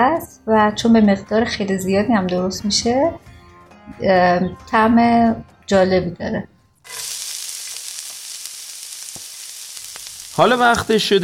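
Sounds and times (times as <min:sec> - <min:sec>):
speech: 0:00.0 - 0:03.3, 0:03.9 - 0:07.1, 0:10.4 - 0:11.2
food bubbling and frying in a pot: 0:06.8 - 0:11.2.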